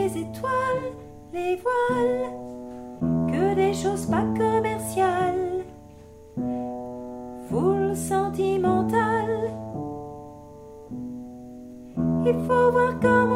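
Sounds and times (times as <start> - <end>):
soprano singing: 0.0 - 6.0, 7.4 - 10.4, 11.9 - 13.3.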